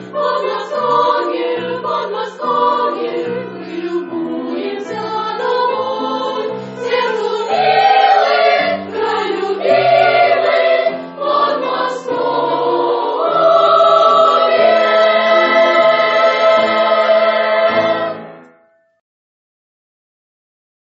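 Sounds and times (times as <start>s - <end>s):
senior school choir singing: 0.0s - 18.4s.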